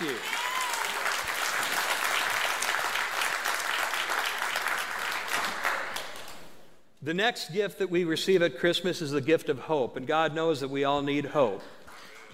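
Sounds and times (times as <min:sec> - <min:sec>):
audience applause: 0:00.0 - 0:06.4
speech: 0:07.0 - 0:12.3.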